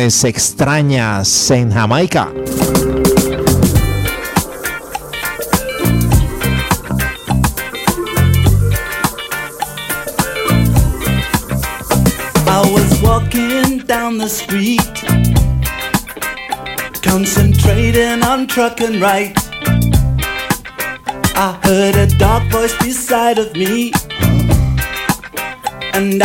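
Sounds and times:
speech: 0:00.0 - 0:03.0, 0:14.0 - 0:15.4, 0:17.1 - 0:19.8, 0:21.4 - 0:24.4, 0:26.0 - 0:26.2
reggae song with guitar, bass and drums: 0:02.0 - 0:26.2
man singing reggae: 0:12.3 - 0:15.3, 0:17.0 - 0:19.6, 0:21.3 - 0:24.4, 0:25.9 - 0:26.2.

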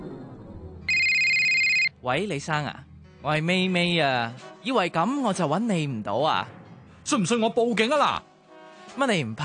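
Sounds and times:
phone ringtone ringing: 0:00.9 - 0:01.9
speech: 0:02.0 - 0:08.3, 0:09.0 - 0:09.4.

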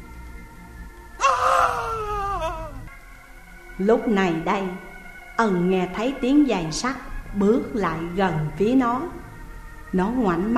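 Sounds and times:
man screaming in pain: 0:01.2 - 0:02.9
speech: 0:03.8 - 0:09.2, 0:09.9 - 0:10.5.

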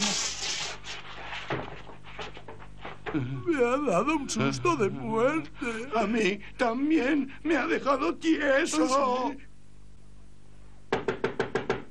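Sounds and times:
speech: 0:03.1 - 0:09.5
knocking on a door: 0:10.9 - 0:11.8.

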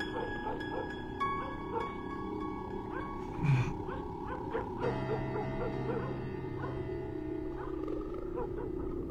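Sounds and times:
dog barking: 0:00.1 - 0:01.9, 0:02.9 - 0:07.0, 0:07.5 - 0:08.9.

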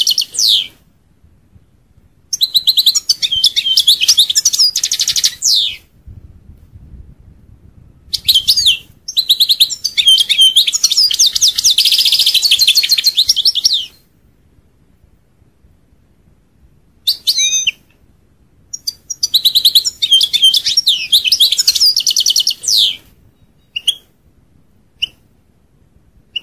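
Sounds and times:
European goldfinch song: 0:00.0 - 0:00.7, 0:02.3 - 0:05.8, 0:08.2 - 0:14.0, 0:18.7 - 0:24.1.

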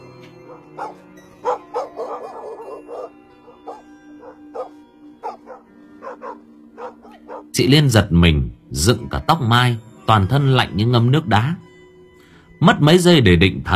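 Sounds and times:
dogs barking in the village: 0:00.3 - 0:07.6
speech: 0:07.6 - 0:11.6, 0:12.6 - 0:13.7.

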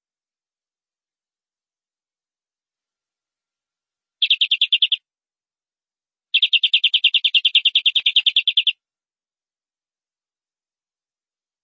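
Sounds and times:
canary song: 0:04.2 - 0:05.1, 0:06.3 - 0:08.8.

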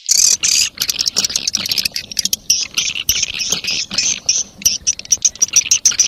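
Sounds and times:
swiftlets chirping: 0:00.2 - 0:06.0.

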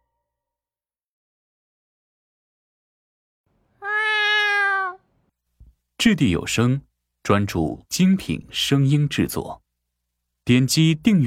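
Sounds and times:
cat meowing: 0:03.8 - 0:05.0
speech: 0:06.0 - 0:09.6, 0:10.5 - 0:11.2.

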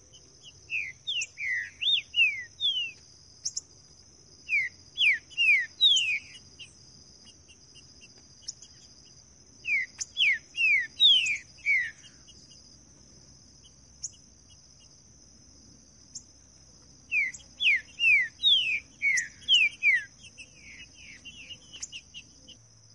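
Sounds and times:
green-winged saltator singing in the bush: 0:00.2 - 0:03.7, 0:04.4 - 0:08.9, 0:09.6 - 0:12.4, 0:17.1 - 0:22.6.

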